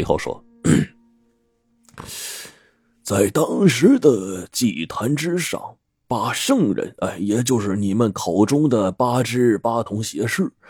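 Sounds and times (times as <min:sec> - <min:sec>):
speech: 0:00.0 - 0:00.9, 0:03.1 - 0:10.6
man clearing his throat: 0:00.6 - 0:01.0.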